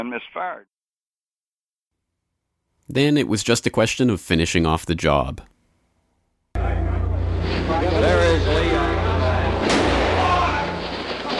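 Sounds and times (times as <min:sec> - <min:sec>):
speech: 0:00.0 - 0:00.8, 0:02.9 - 0:05.5
crowd clamor and shouting voices: 0:06.6 - 0:11.3
gunshot in archival news footage: 0:09.6 - 0:11.3.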